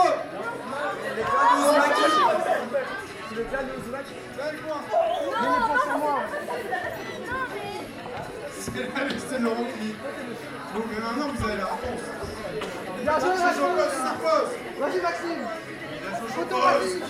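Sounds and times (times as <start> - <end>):
quiz audience shouting out the title: 0.0 - 3.1, 4.8 - 7.6
speech: 8.8 - 15.7, 16.4 - 17.0.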